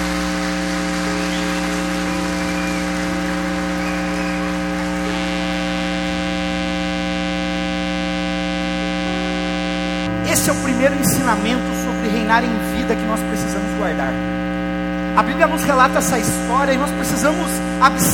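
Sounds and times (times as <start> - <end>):
audience applauding: 0.0 - 6.8
sustained droning tone: 0.0 - 18.1
speech: 10.4 - 14.4, 15.2 - 18.1.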